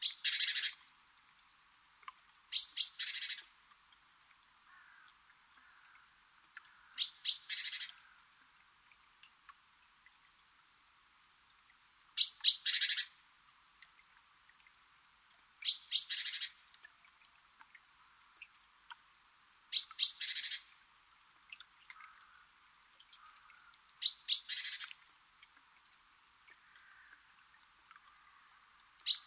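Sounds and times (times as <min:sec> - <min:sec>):
great tit buzzy churr call: 0:00.0 - 0:00.8, 0:02.5 - 0:03.5, 0:06.6 - 0:08.2, 0:12.2 - 0:13.1, 0:15.6 - 0:16.6, 0:19.7 - 0:20.7, 0:23.2 - 0:24.9.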